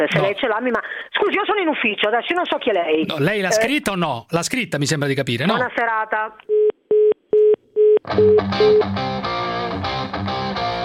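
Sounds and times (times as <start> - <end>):
speech: 0.0 - 6.6, 8.1 - 10.5
phone line tones after call hung up: 6.5 - 8.9.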